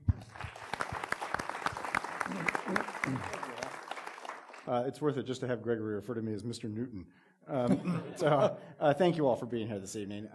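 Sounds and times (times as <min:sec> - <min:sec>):
audience applause welcoming a speaker at an evening panel discussion: 0:00.0 - 0:04.7
speech: 0:02.3 - 0:03.5, 0:04.7 - 0:10.3.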